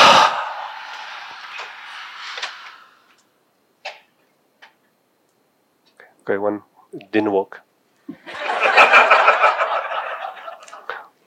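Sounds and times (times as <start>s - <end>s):
long exhaled breath in a breathing exercise demonstration: 0.0s - 3.1s
speech: 6.3s - 8.2s
laughter: 8.2s - 11.0s.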